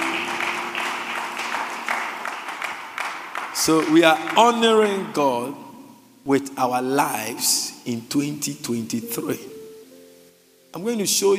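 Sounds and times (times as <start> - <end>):
audience clapping: 0.0 - 5.6
speech: 3.6 - 5.6, 6.3 - 9.5, 10.8 - 11.3.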